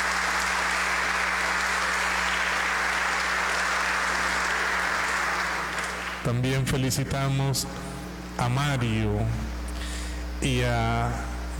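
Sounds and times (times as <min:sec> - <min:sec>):
audience applauding: 0:00.0 - 0:06.3
speech: 0:06.3 - 0:09.5, 0:10.4 - 0:11.5.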